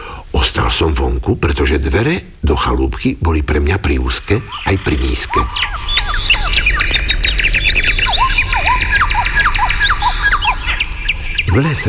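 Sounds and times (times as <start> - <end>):
low outdoor rumble: 0.3 - 11.8
speech: 0.4 - 6.3, 11.6 - 11.8
birds singing in a forest: 3.8 - 11.8.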